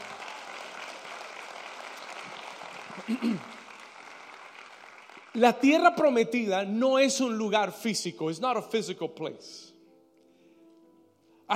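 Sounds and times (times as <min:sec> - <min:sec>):
applause: 0:00.0 - 0:06.3
speech: 0:03.1 - 0:03.6, 0:05.3 - 0:09.7.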